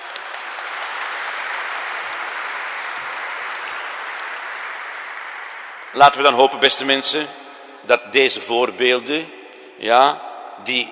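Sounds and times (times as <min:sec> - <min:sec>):
audience applause: 0:00.0 - 0:06.4
speech: 0:05.9 - 0:10.8.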